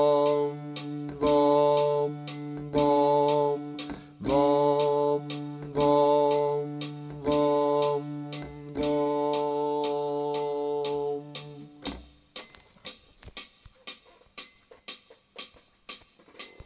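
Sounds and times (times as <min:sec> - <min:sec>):
bass instruments: 0:00.0 - 0:12.2.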